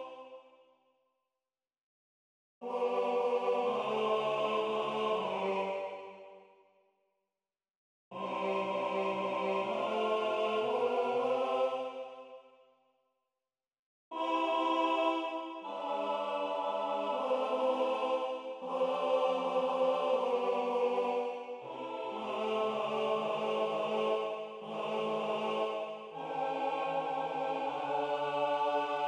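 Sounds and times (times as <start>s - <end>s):
choral music with tenor solo: 2.8s - 6.0s, 8.3s - 12.1s, 14.2s - 29.0s.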